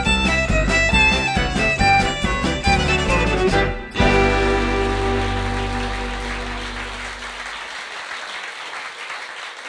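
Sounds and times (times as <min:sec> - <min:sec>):
polka music: 0:00.0 - 0:07.5.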